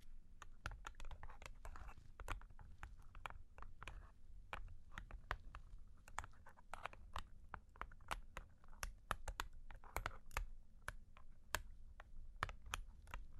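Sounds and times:
long claws tapping and scratching: 0.4 - 13.3.

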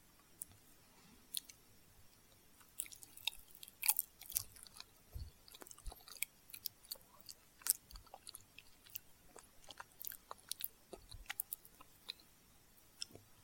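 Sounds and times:
person chewing a bite of banana-and-milk dessert: 1.3 - 1.6, 2.6 - 12.3, 12.9 - 13.4.

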